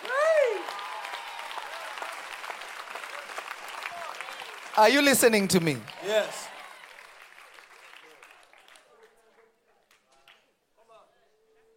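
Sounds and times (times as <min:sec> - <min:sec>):
crowd audience clapping: 0:00.0 - 0:10.5
speech: 0:04.8 - 0:06.4.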